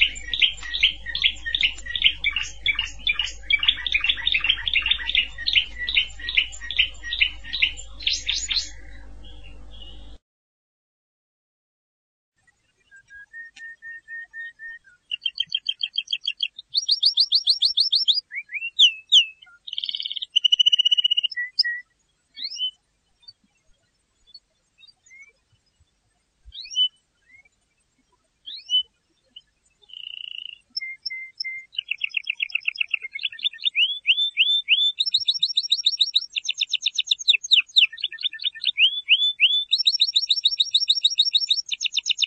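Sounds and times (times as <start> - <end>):
canary singing: 0.0 - 10.2, 12.8 - 22.8, 28.4 - 42.2
low hum: 0.0 - 10.2.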